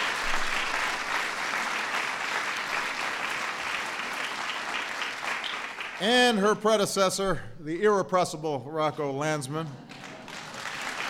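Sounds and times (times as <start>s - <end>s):
audience round of applause: 0.0s - 6.1s, 9.8s - 11.0s
speech: 6.0s - 9.8s.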